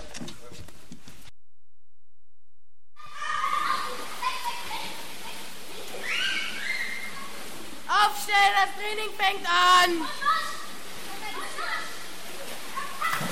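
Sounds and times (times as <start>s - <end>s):
children's voices echoing in a swimming pool hall: 3.0s - 13.2s
speech: 8.4s - 10.2s.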